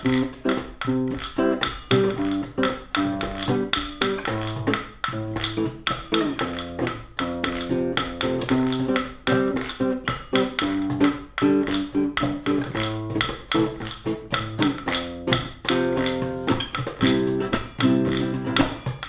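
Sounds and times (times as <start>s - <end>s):
percussion: 0.0s - 19.0s.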